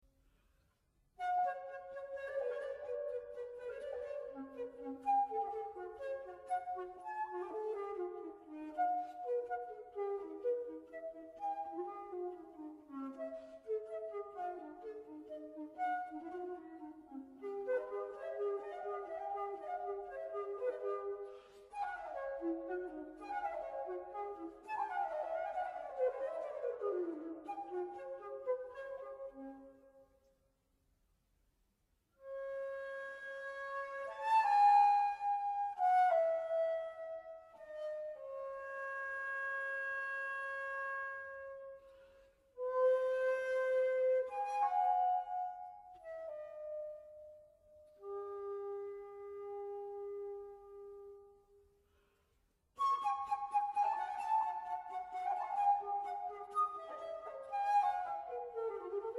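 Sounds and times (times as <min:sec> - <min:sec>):
flute: 0:00.0 - 0:30.5, 0:32.1 - 0:59.1.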